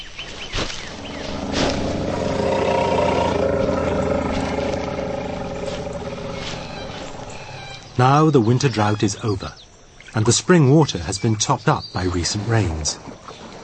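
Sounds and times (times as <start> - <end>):
herd of mastodons trumpeting and roaring: 0.8 - 8.7
speech: 8.0 - 13.1.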